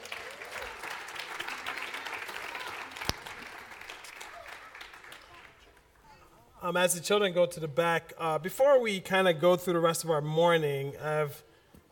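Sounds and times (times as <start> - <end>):
audience applause: 0.0 - 5.8
speech: 6.6 - 11.5.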